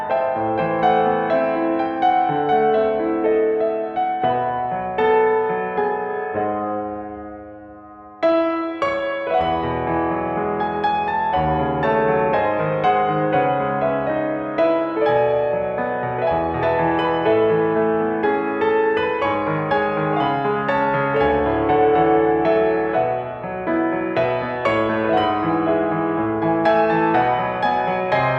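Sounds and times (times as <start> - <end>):
piano playing: 0.0 - 28.3.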